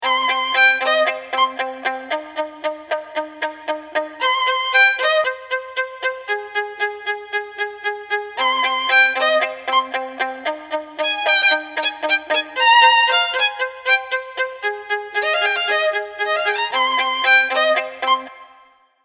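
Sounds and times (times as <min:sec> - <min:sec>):
violin: 0:00.0 - 0:18.9.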